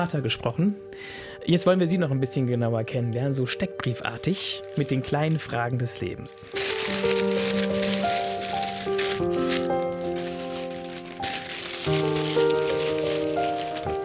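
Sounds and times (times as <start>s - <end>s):
speech: 0.0s - 7.4s
soft melodic tune: 1.5s - 14.0s
cards rustling as they are shuffled and drawn: 4.3s - 14.0s.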